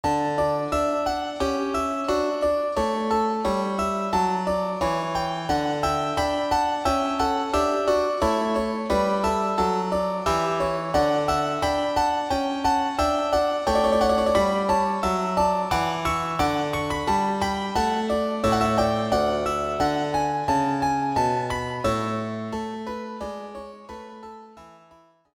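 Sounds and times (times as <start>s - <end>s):
harpsichord: 0.0s - 24.9s.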